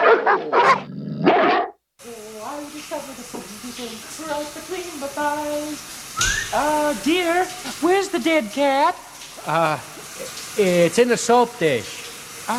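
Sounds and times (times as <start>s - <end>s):
dogs barking: 0.0s - 1.8s
speech: 3.0s - 9.9s, 10.6s - 12.5s.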